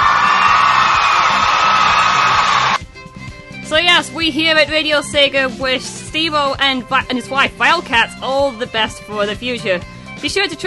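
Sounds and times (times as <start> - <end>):
applause: 0.0 - 2.8
crowd cheering and whooping: 0.0 - 2.8
speech: 4.0 - 10.6.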